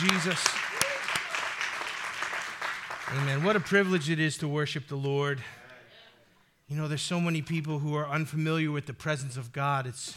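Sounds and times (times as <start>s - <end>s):
speech: 0.0s - 0.7s, 3.1s - 5.6s, 6.7s - 10.1s
audience hand clapping: 0.0s - 3.9s.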